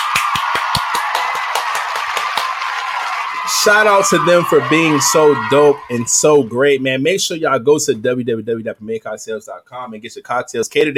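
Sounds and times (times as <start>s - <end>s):
round of applause: 0.0s - 6.5s
speech: 3.6s - 10.9s.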